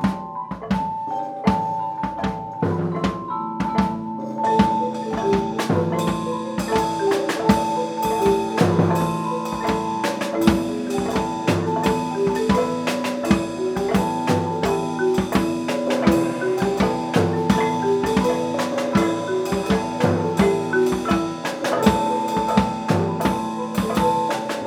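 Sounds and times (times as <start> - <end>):
percussion playing at a festival: 0.0 - 24.6.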